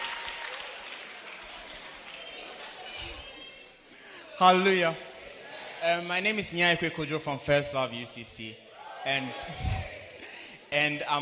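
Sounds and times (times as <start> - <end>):
church congregation clapping to welcome a member: 0.0 - 3.5
speech: 4.4 - 5.1, 5.8 - 9.8, 10.7 - 11.2.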